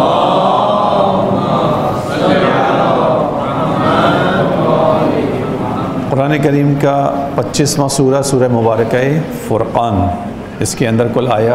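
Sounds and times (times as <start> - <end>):
congregation reciting salawat aloud together at a Ramadan prayer gathering: 0.0 - 9.4
speech: 6.4 - 11.5.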